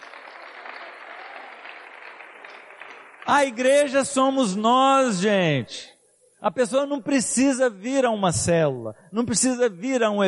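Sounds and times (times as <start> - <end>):
applause: 0.0 - 4.0
speech: 3.3 - 10.2.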